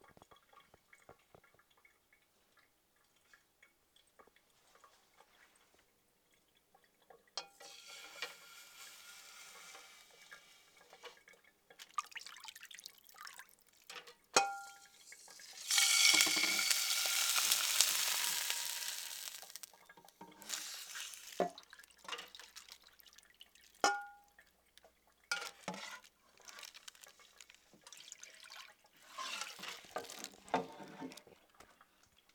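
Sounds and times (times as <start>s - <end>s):
sizzling: 7.4s - 11.1s, 14.4s - 24.1s, 25.3s - 31.4s.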